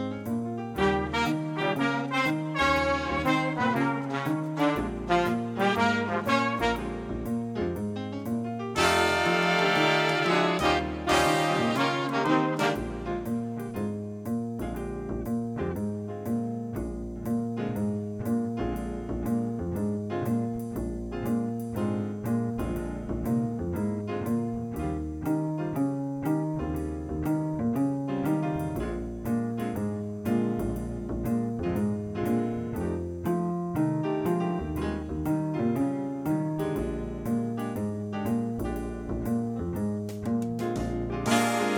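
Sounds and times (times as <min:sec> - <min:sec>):
B-flat blues backing track for wind improvisation: 0:00.0 - 0:41.7.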